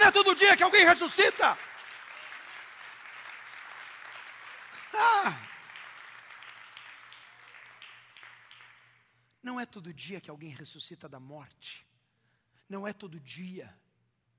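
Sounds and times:
audience applauding: 0.0 - 9.0
speech: 0.2 - 1.7, 5.0 - 5.5, 9.4 - 11.9, 12.7 - 13.8.

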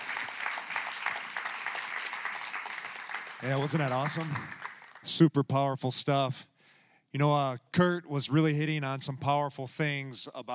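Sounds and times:
audience applause welcoming a speaker to the stage: 0.0 - 5.1
speech: 3.4 - 6.5, 7.1 - 10.5.

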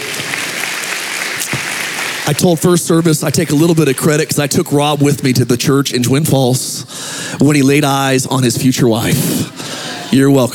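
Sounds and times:
audience clapping: 0.0 - 4.8
speech: 2.3 - 9.4, 10.1 - 10.5.

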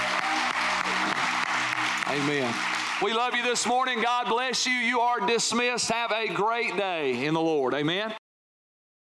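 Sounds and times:
audience clapping in praise: 0.0 - 5.0
speech: 2.1 - 8.2.

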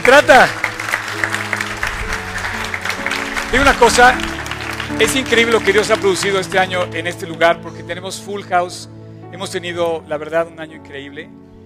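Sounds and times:
speech: 0.0 - 0.6, 3.5 - 4.3, 4.9 - 11.4
audience applause: 0.0 - 7.6.

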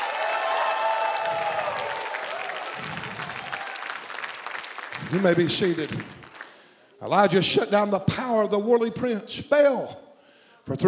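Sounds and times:
audience shouting and cheering: 0.0 - 5.4
audience applauding: 0.0 - 6.8
speech: 5.1 - 6.2, 7.0 - 10.0, 10.7 - 10.8.

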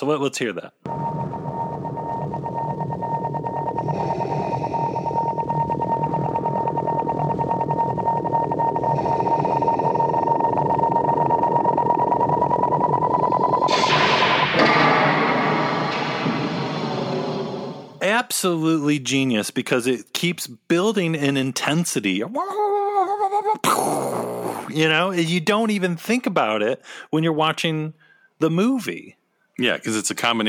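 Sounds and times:
speech: 0.0 - 1.2, 18.4 - 30.4
sci-fi torture droid electronic drone: 0.9 - 18.0
harsh door slam: 13.7 - 18.0.

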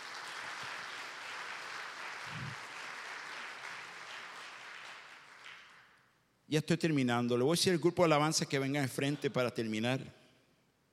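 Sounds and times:
loud audience applause: 0.0 - 5.9
speech: 6.5 - 10.2.

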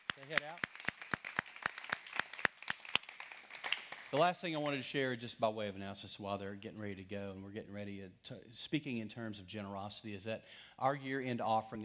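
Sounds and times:
audience clapping for children: 0.0 - 4.8
speech: 0.3 - 0.8, 4.1 - 11.8.

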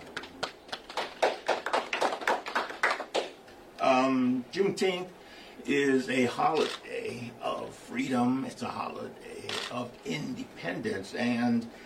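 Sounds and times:
scattered audience applause: 0.2 - 3.4
speech: 3.8 - 11.8.

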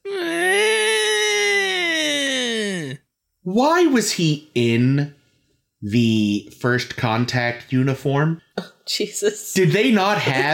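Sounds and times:
person imitating a high-pitched nerdy screech: 0.0 - 3.0
speech: 3.4 - 5.2, 5.8 - 10.5.

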